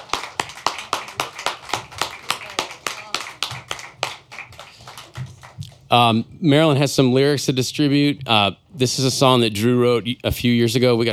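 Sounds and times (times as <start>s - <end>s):
audience applause for songwriters: 0.0s - 6.2s
speech: 5.9s - 11.1s.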